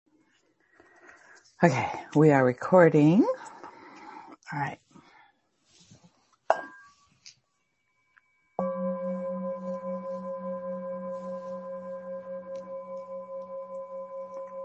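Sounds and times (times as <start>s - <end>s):
speech: 1.6s - 3.3s, 4.5s - 4.8s
bell ringing: 8.2s - 14.6s.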